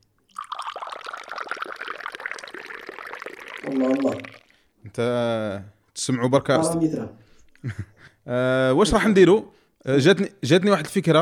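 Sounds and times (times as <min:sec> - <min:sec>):
tea pouring into glasses: 0:00.3 - 0:04.8
speech: 0:03.6 - 0:04.4, 0:05.0 - 0:11.2
laughter: 0:07.6 - 0:08.2.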